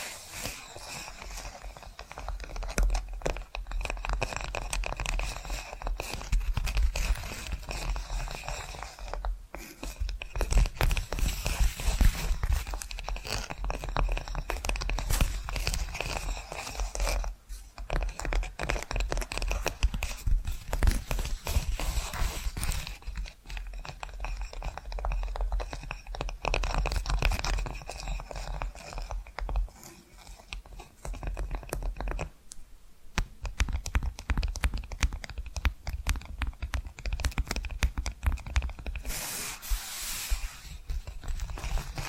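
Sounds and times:
scratching and scraping: 0:00.0 - 0:32.3, 0:33.4 - 0:42.0
quick irregular taps: 0:00.0 - 0:32.4, 0:33.1 - 0:39.5.

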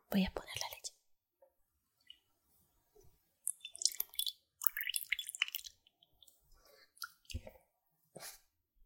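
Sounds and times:
speech: 0:00.1 - 0:00.7
milk pouring onto cereal: 0:03.5 - 0:07.5.

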